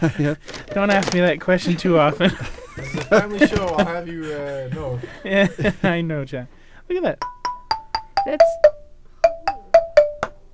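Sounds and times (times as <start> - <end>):
laughter: 0.0 - 6.2
speech: 0.0 - 7.3, 8.2 - 8.8
wooden doorbell playing a short musical tune: 7.2 - 10.5.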